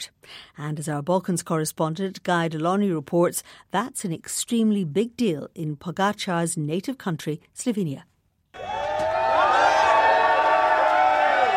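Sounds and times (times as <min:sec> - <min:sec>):
speech: 0:00.0 - 0:08.8
crowd ovation and cheering: 0:08.6 - 0:11.5.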